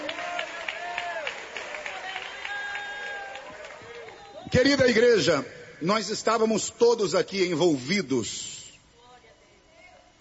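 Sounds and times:
audience applauding: 0:00.0 - 0:04.5
speech: 0:04.5 - 0:08.5.

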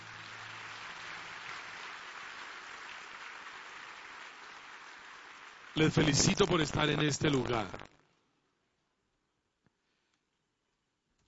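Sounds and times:
audience applauding: 0:00.0 - 0:07.8
speech: 0:05.8 - 0:07.9.

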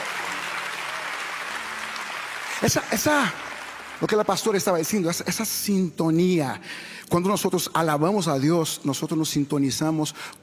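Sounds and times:
church congregation clapping in praise of God: 0:00.0 - 0:05.5
speech: 0:02.6 - 0:10.4.

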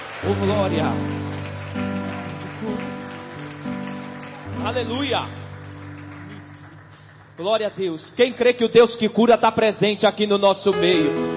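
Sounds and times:
loud audience applause: 0:00.0 - 0:08.6
speech: 0:00.2 - 0:01.9, 0:04.6 - 0:05.4, 0:07.4 - 0:11.3.

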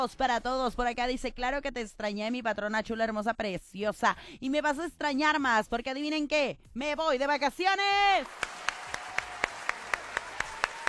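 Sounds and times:
speech: 0:00.0 - 0:08.6
hands clapping live in a studio: 0:08.2 - 0:10.8.

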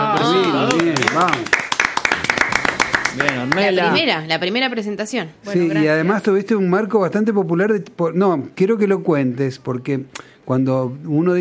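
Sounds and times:
audience applause: 0:00.0 - 0:03.9
speech: 0:01.2 - 0:01.5, 0:03.2 - 0:11.3.

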